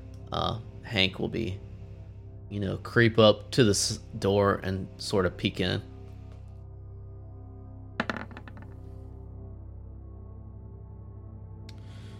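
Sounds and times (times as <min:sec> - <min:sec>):
speech: 0:00.3 - 0:01.7, 0:02.5 - 0:05.9
percentile die clattering onto a hard surface: 0:08.0 - 0:08.8.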